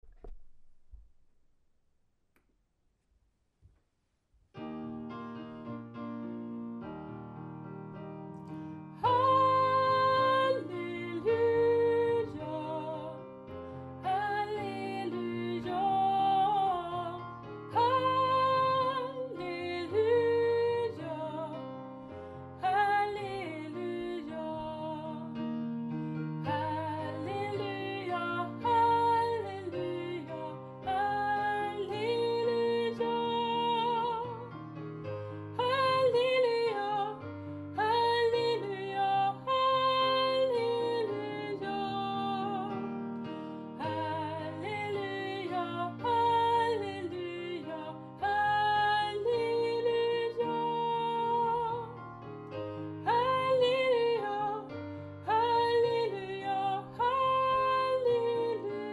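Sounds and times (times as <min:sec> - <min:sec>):
soprano singing a refrain: 0:08.4 - 0:58.9.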